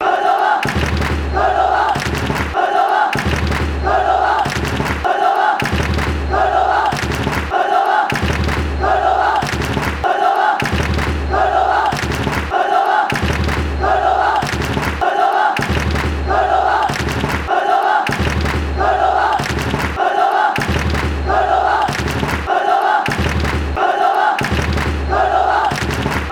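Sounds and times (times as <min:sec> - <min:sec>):
Cordoba football crowd chanting: 0:00.0 - 0:26.3.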